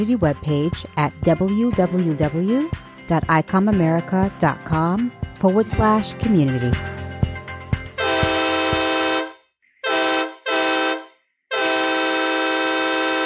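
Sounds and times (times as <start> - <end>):
speech: 0.0 - 6.9
train horn: 8.0 - 13.2.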